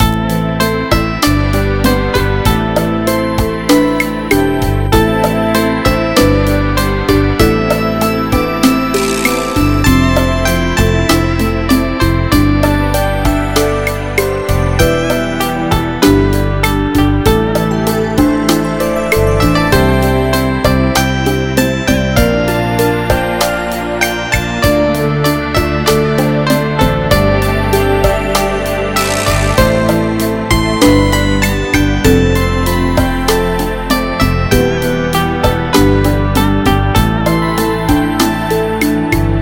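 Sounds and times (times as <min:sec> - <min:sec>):
MIDI background music: 0:00.0 - 0:39.4.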